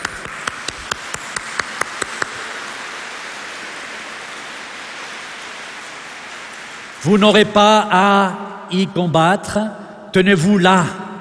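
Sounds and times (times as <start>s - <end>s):
audience applause: 0.0s - 7.1s
speech: 7.0s - 11.0s.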